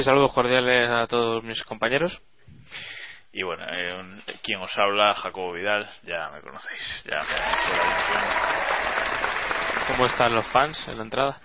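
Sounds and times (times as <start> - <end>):
speech: 0.0 - 9.3, 9.9 - 11.4
person applauding himself: 7.2 - 10.7.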